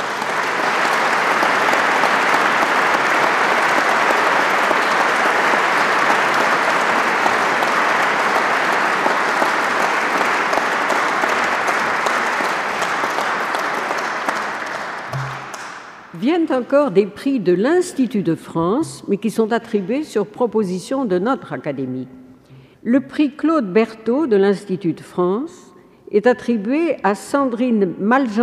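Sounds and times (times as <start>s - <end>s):
large audience applause: 0.0s - 16.1s
speech: 16.5s - 22.2s, 22.8s - 28.4s.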